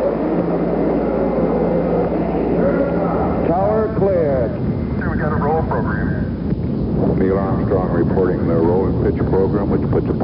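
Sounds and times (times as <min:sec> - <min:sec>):
Apollo 11 rocket engines roaring at launch: 0:00.0 - 0:10.2.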